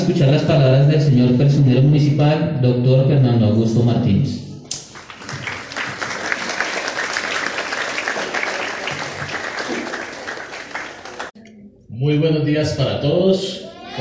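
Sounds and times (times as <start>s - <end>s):
speech: 0.0s - 4.5s, 12.0s - 13.9s
welcoming applause from student audience: 4.8s - 11.4s.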